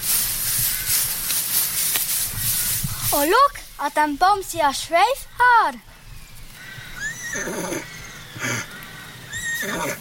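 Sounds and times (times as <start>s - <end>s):
speech: 3.1s - 5.9s, 7.4s - 7.6s
horse neighing: 6.8s - 9.9s.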